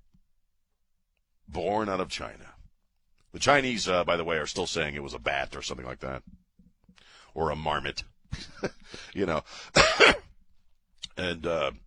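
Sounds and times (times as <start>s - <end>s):
speech: 1.6s - 2.5s, 3.3s - 6.4s, 7.4s - 10.2s, 11.2s - 11.8s
cough: 9.8s - 10.4s.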